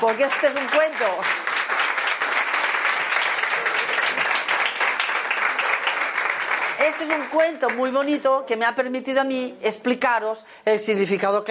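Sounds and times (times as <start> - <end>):
speech: 0.0 - 1.8, 6.8 - 11.5
audience applause: 0.0 - 7.8.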